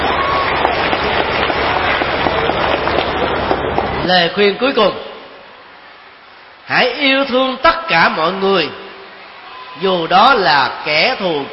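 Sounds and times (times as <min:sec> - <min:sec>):
audience applause: 0:00.0 - 0:04.2
speech: 0:04.1 - 0:05.1, 0:06.7 - 0:08.8, 0:09.8 - 0:11.5.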